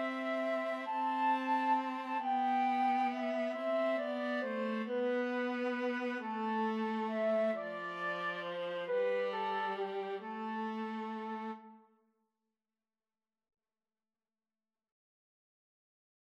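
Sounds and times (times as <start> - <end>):
violin: 0.0 - 11.8
flute: 0.0 - 11.9.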